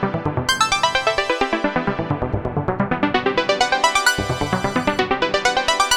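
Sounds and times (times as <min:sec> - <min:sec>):
techno synth arpeggio in A: 0:00.1 - 0:05.9.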